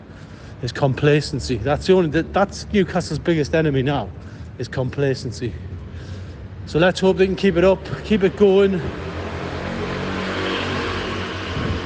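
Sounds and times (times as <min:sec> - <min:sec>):
speech: 0:00.6 - 0:05.7, 0:06.7 - 0:09.1
loud motorbike passing: 0:07.5 - 0:11.8.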